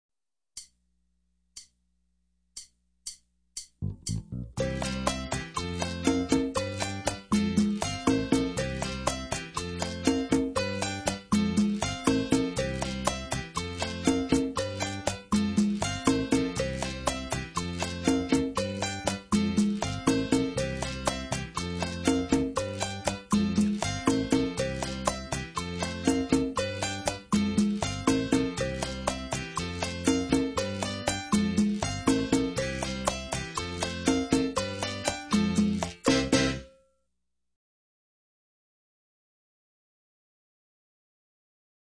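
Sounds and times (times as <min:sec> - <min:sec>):
latin groove music: 0:03.6 - 0:36.8.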